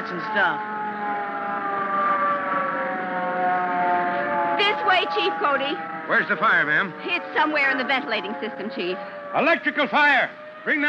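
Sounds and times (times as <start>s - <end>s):
hook and ladder fire truck siren: 0.0s - 10.8s
speech: 0.1s - 1.2s, 4.9s - 10.8s.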